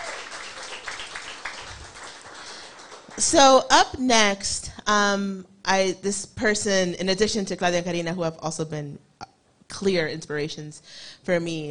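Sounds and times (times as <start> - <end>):
audience applause: 0.0 - 3.2
speech: 3.2 - 9.1, 9.7 - 11.6.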